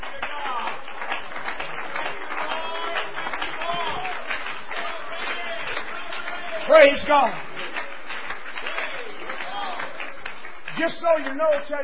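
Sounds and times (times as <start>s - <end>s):
audience clapping hands: 0.0s - 11.8s
speech: 6.8s - 7.4s, 10.8s - 11.8s.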